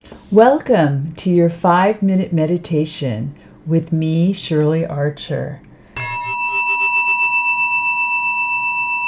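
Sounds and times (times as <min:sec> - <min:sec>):
speech: 0:00.3 - 0:05.6
meditation chime ringing: 0:06.0 - 0:09.0.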